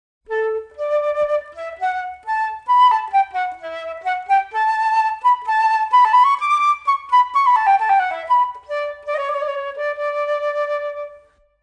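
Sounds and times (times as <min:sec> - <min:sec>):
flute: 0:00.2 - 0:11.6.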